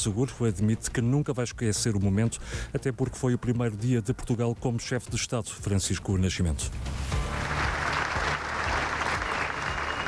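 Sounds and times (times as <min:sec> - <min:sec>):
speech: 0:00.0 - 0:07.6
crowd applause: 0:07.2 - 0:10.0.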